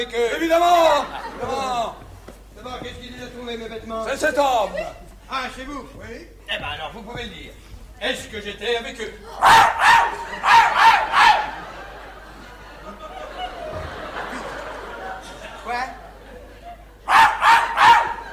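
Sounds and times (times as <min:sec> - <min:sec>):
speech: 0:00.0 - 0:02.0, 0:02.7 - 0:11.5, 0:15.7 - 0:16.0
laughter: 0:00.0 - 0:05.2, 0:09.1 - 0:18.3
quiet talking and murmuring: 0:00.0 - 0:17.2
person barking like a dog: 0:09.4 - 0:11.6, 0:17.1 - 0:18.3.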